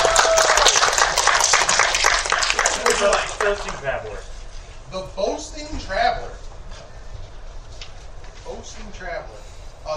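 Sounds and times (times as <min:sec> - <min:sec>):
audience applause: 0:00.0 - 0:04.1
speech: 0:03.5 - 0:04.3, 0:04.9 - 0:06.4, 0:08.5 - 0:09.9.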